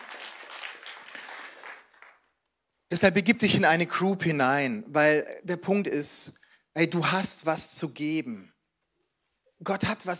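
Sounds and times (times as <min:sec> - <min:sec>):
crowd applauding: 0:00.0 - 0:02.4
speech: 0:02.9 - 0:08.5, 0:09.6 - 0:10.1.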